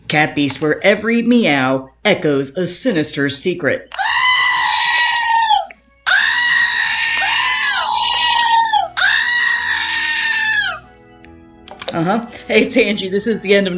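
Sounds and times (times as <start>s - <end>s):
speech: 0.1s - 4.2s, 12.0s - 13.7s
screaming goat novelty toy: 3.9s - 10.8s.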